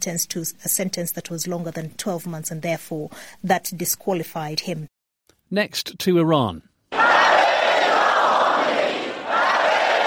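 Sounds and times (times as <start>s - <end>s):
speech: 0.0s - 4.9s, 5.5s - 7.2s
crowd chanting in city street: 6.9s - 10.0s.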